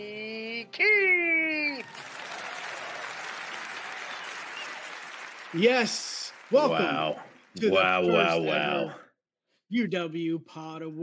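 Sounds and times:
audience applause at an awards show welcoming the hosts: 1.5 - 8.4
speech: 5.5 - 9.0, 9.7 - 11.0.

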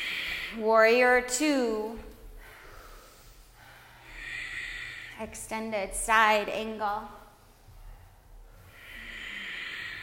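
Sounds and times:
speech: 0.5 - 2.1, 5.2 - 7.2
slow breathing through the nose during yoga: 2.4 - 5.2, 8.5 - 10.0.

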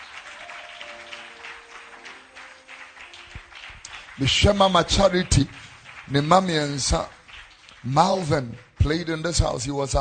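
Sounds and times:
audience clapping hands: 0.0 - 9.9
speech: 4.2 - 7.2, 7.8 - 9.9.

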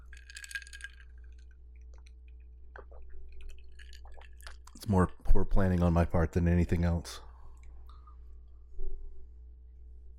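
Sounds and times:
ice clinking in a cocktail glass: 0.0 - 1.4
speech: 4.9 - 7.3.

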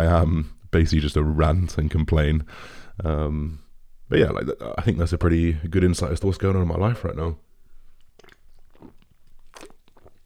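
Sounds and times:
speech: 0.0 - 7.4
person crunchy chewing while eating: 8.0 - 10.2.

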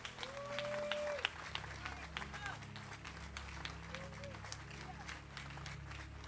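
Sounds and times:
crowd clapping: 0.0 - 6.2.

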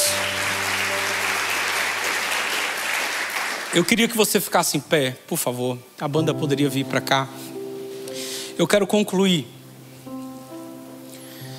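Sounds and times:
audience applause: 0.0 - 4.0
speech: 3.7 - 7.4, 8.6 - 9.6.

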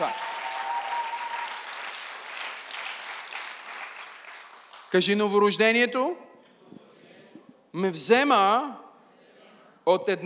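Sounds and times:
congregation applauding during a church service: 0.0 - 5.2
speech: 4.9 - 6.3, 7.8 - 8.8, 9.8 - 10.2.

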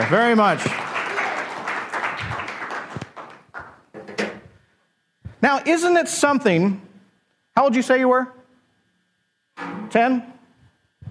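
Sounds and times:
speech: 0.0 - 0.8, 5.4 - 6.9, 7.6 - 8.4, 9.6 - 10.3
audience applause: 0.0 - 3.8.

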